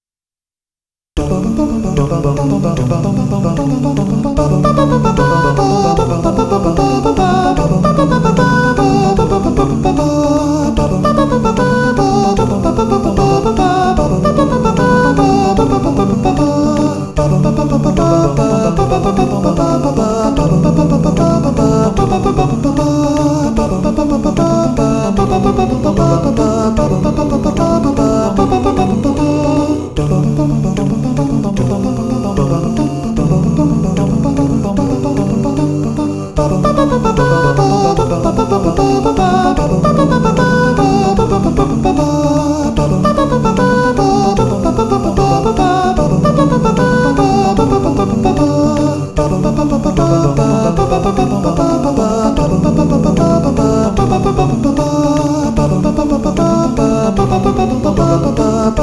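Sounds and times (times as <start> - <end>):
a cappella singing: 1.2 - 58.8.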